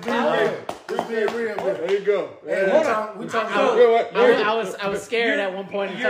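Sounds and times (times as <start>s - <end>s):
hand clapping: 0.0s - 2.3s
speech: 0.3s - 6.0s.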